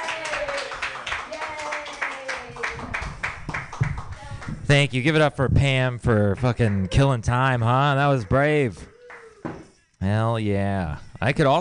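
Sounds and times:
audience voices and cheers: 0.0s - 3.0s, 6.4s - 9.4s
audience applause at an open mic comedy night: 0.0s - 4.2s, 6.1s - 9.4s
speech: 4.7s - 8.9s, 10.1s - 11.5s.

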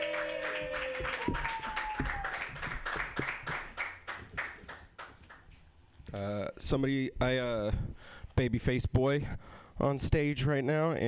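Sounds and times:
comedy show audience applauding a comedian: 0.0s - 5.4s
speech: 1.3s - 1.6s, 6.7s - 11.0s.

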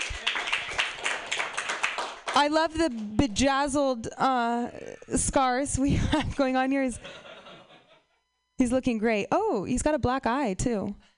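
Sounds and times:
crowd applauding: 0.0s - 3.2s
speech: 2.4s - 7.3s, 8.6s - 11.1s
laughter: 5.8s - 8.2s.

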